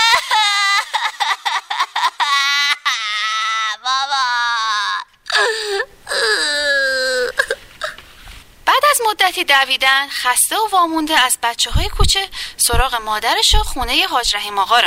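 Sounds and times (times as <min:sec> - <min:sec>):
child crying in fear: 0:00.0 - 0:08.0
speech: 0:09.4 - 0:14.8.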